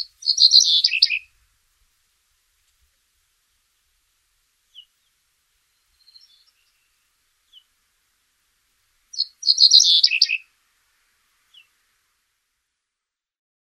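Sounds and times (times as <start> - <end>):
cinereous bunting: 0.0 - 1.3, 9.1 - 10.4.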